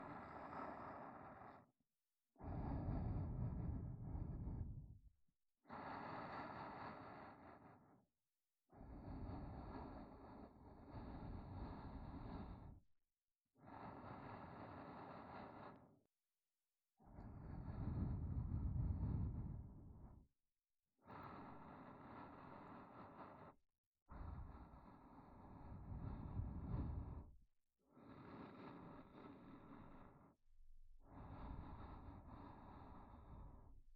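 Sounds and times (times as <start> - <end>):
soft breathing loop in the right ear: 0.0 - 1.7, 2.3 - 8.1, 8.7 - 12.9, 13.6 - 16.1, 17.0 - 20.3, 21.0 - 33.9.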